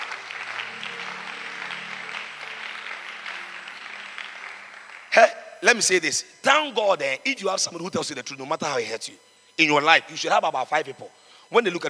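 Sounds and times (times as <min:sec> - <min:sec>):
crowd clapping: 0:00.0 - 0:05.9
speech: 0:05.2 - 0:11.8.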